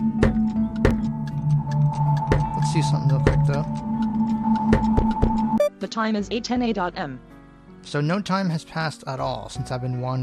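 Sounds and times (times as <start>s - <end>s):
clock ticking: 0.0s - 5.7s
speech: 2.8s - 3.9s, 5.8s - 10.2s.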